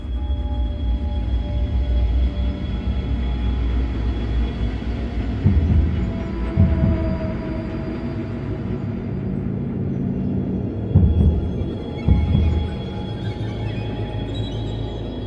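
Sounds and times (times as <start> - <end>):
danger music: 0.2 - 15.2.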